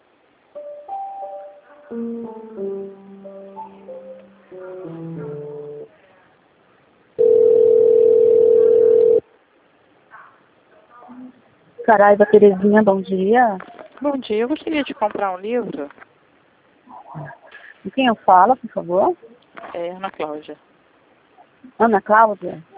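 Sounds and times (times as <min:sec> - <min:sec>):
electronic melodic tones on a bookstore customer service line: 0:00.6 - 0:05.9
speech: 0:01.9 - 0:03.4, 0:11.9 - 0:16.0, 0:17.9 - 0:20.7, 0:21.8 - 0:22.7
telephone line ringing while a call is transferred: 0:07.2 - 0:09.2.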